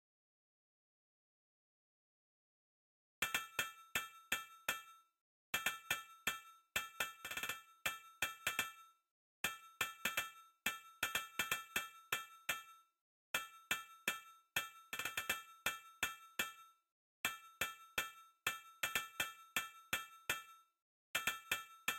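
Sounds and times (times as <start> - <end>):
percussion: 3.2 - 21.9.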